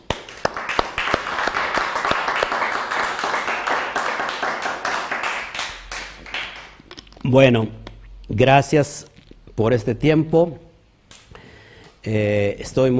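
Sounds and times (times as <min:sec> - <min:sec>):
audience applause: 0:00.1 - 0:06.8
speech: 0:07.3 - 0:10.7, 0:12.0 - 0:12.9.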